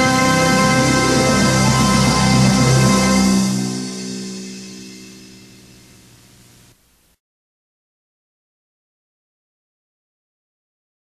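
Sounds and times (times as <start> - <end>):
instrumental national anthem: 0.0 - 5.9.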